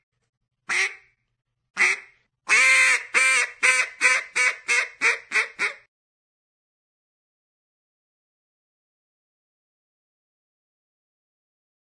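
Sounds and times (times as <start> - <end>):
duck: 0.7 - 1.1, 1.8 - 5.9.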